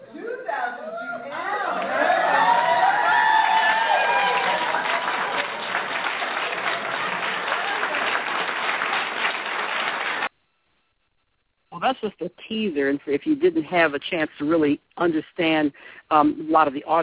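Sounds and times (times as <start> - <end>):
cheers and high whoops: 1.5 - 8.3
audience applause at pageant: 1.7 - 10.3
speech: 12.6 - 17.0.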